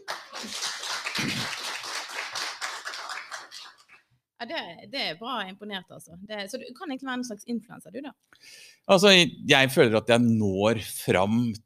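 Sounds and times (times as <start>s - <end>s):
applause: 0.0s - 4.1s
speech: 4.4s - 11.6s.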